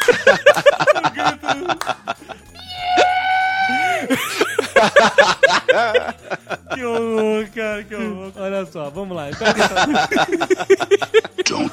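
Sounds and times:
laughter: 0.0s - 8.3s, 9.3s - 11.7s
voice imitating a ferret's death scream: 2.6s - 4.0s
speech: 8.6s - 11.7s.

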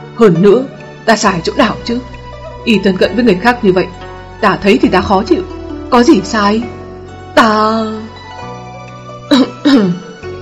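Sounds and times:
speech: 0.2s - 6.8s, 7.4s - 8.1s, 9.3s - 10.0s
dry cough: 9.3s - 10.1s.

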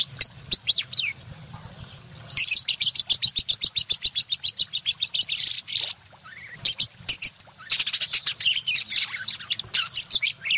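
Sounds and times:
budgerigar chattering song of high chirps, sweeps and twittering: 2.3s - 10.5s.

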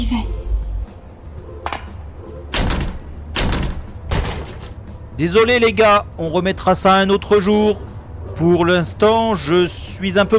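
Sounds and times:
speech: 0.0s - 0.4s, 5.2s - 10.3s
door being battered with heavy blows: 2.5s - 4.8s.

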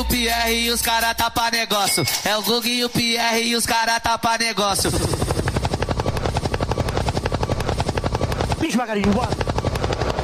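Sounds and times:
speech: 0.0s - 5.3s, 8.7s - 9.4s
helicopter sound effect: 4.6s - 10.2s.

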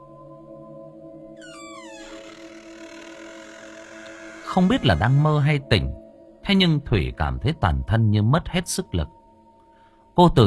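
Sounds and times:
bedroom door creaking: 1.4s - 5.6s
speech: 4.5s - 9.2s, 10.2s - 10.4s.

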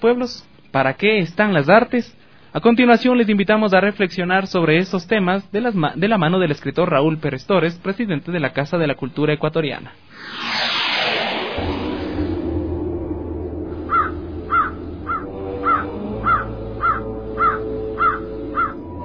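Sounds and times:
speech: 0.0s - 10.8s
rushing whooshing noise: 10.1s - 15.2s
low droning hum: 10.2s - 19.0s
crow cawing: 13.9s - 18.9s.

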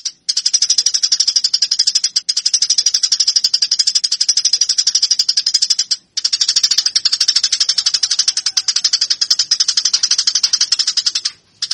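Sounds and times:
caged Eurasian tree sparrow fighting call of buzzy rapid chirps: 0.0s - 11.7s.

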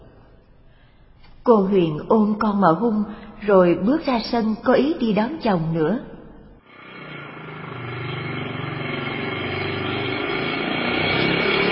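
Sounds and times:
speech: 1.5s - 6.1s
motorbike engine droning as a man rides home into the yard: 6.6s - 11.7s.

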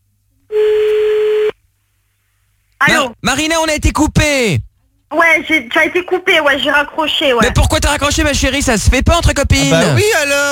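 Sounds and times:
telephone line tone as a call is placed: 0.5s - 1.6s
speech: 2.8s - 10.5s.

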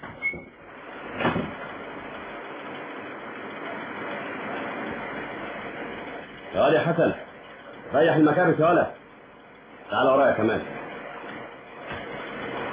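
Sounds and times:
door being opened: 0.0s - 1.6s
speech: 6.6s - 7.2s, 7.9s - 9.0s, 9.9s - 10.8s.

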